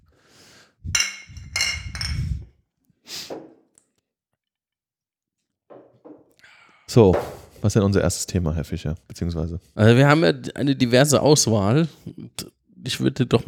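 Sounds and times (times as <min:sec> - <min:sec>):
beer bottles clinking together in a toast: 0:00.9 - 0:02.4
speech: 0:06.9 - 0:13.4.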